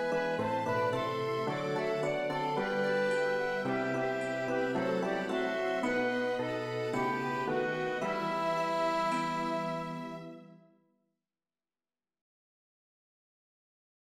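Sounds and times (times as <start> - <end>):
orchestra: 0.0 - 10.6.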